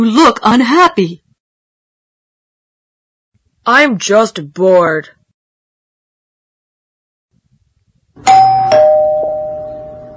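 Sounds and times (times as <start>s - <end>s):
speech: 0.0s - 1.2s, 3.6s - 5.2s
doorbell chiming: 8.2s - 10.1s.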